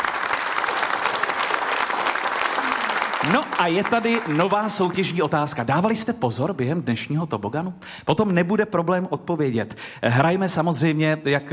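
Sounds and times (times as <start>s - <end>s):
applause: 0.0s - 5.6s
speech: 3.2s - 11.5s.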